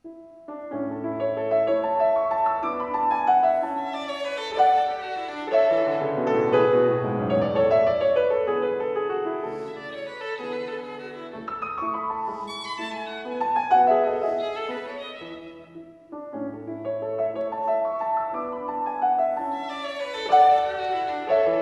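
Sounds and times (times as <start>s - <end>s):
violin sonata in A major: 0.0s - 21.6s.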